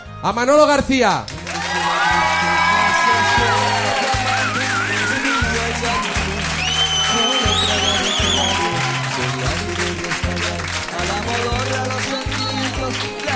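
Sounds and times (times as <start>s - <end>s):
speech: 0.2s - 1.4s
crowd cheering and applauding welcoming a guest: 1.3s - 13.3s
whoops and whistles: 2.0s - 9.1s.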